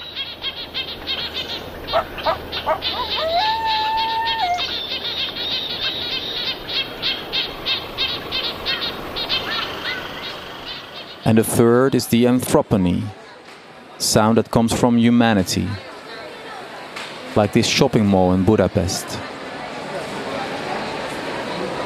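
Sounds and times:
birdsong in a natural habitat: 0.0 - 12.4
steady natural hiss: 0.0 - 21.8
speech: 11.3 - 13.2, 14.1 - 15.9, 17.4 - 19.0.

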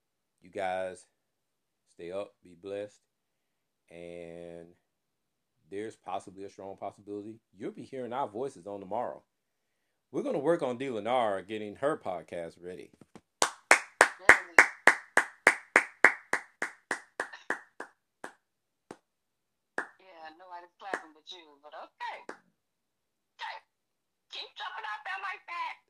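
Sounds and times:
speech: 0.4 - 1.2, 2.0 - 3.1, 3.9 - 4.8, 5.7 - 9.3, 10.1 - 13.1, 20.6 - 22.4
hand claps: 13.2 - 19.1, 19.8 - 20.0, 20.9 - 21.1, 22.2 - 22.5.

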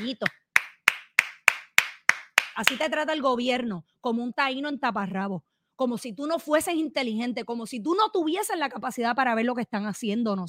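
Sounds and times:
speech: 0.0 - 0.4, 2.6 - 10.4
applause: 0.0 - 2.8.

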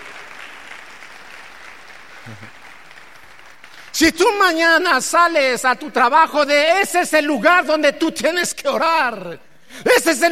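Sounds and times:
audience applause: 0.0 - 4.3
speech: 2.3 - 2.6, 3.9 - 10.2.

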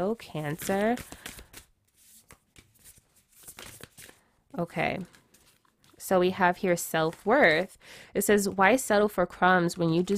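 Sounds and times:
speech: 0.0 - 1.4, 4.6 - 5.2, 6.0 - 10.1
oracle cards being shuffled by hand: 0.1 - 4.2, 4.9 - 6.0.

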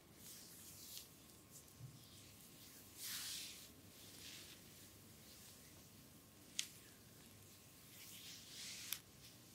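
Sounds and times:
bamboo massage rubbing and brushing strokes: 0.1 - 9.5.

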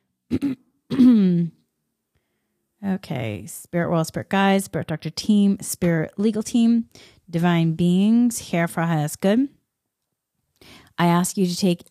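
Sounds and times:
throat clearing: 0.3 - 1.5
speech: 0.3 - 1.6, 2.8 - 9.6, 10.6 - 11.8.

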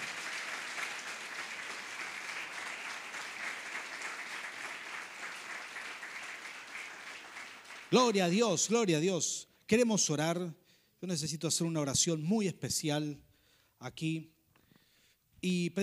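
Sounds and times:
audience applause: 0.0 - 8.3
speech: 7.9 - 14.4, 15.4 - 15.8.

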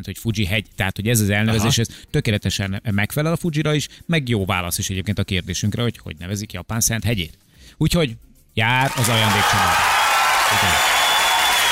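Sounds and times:
speech: 0.0 - 9.9, 10.5 - 10.9
applause: 8.7 - 11.6.

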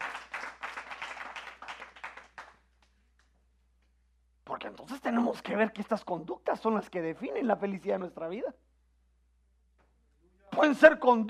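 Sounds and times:
audience applause: 0.0 - 2.6
speech: 4.6 - 8.6, 10.6 - 11.2.

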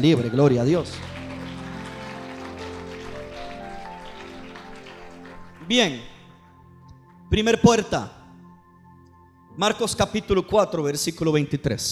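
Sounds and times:
speech: 0.0 - 1.1, 5.7 - 6.1, 7.3 - 8.2, 9.6 - 11.9
large crowd applauding loudly: 0.0 - 6.6
sustained musical chords: 0.0 - 10.2.

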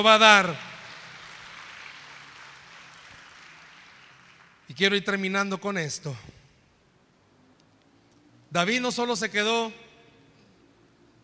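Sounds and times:
speech: 0.0 - 0.7, 4.7 - 6.4, 8.5 - 9.8
audience applauding: 0.0 - 4.7.

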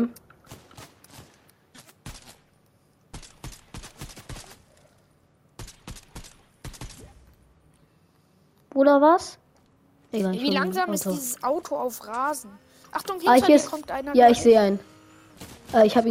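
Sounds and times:
video game gunfire: 0.4 - 4.7, 5.6 - 7.4, 13.3 - 16.0
speech: 8.8 - 9.4, 10.1 - 16.0.

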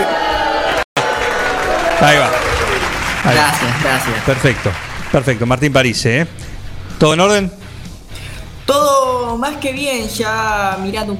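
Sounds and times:
audience applause: 0.0 - 5.6
speech: 2.0 - 2.5, 3.2 - 7.6, 8.7 - 11.1.

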